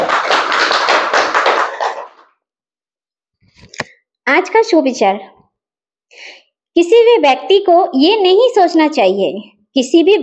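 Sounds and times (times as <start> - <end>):
loud applause: 0.0 - 2.2
speech: 4.4 - 5.4, 6.8 - 10.2.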